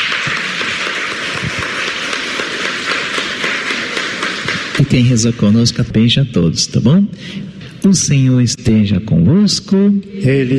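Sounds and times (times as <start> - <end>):
crowd applause: 0.0 - 6.1
speech: 4.8 - 10.5.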